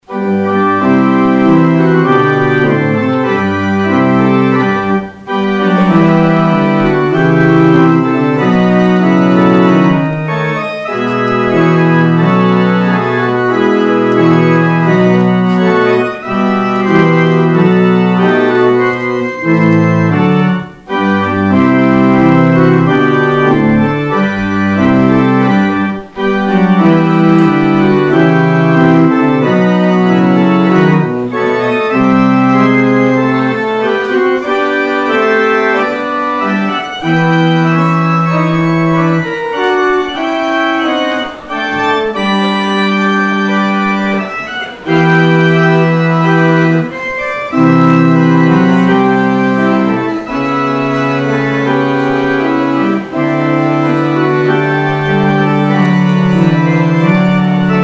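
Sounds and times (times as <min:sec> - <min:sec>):
organ outro: 0:00.0 - 0:57.8.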